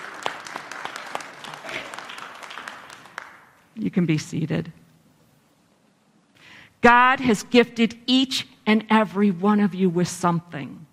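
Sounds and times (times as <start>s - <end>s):
round of applause: 0.0s - 3.6s
speech: 3.8s - 4.8s, 6.8s - 10.9s.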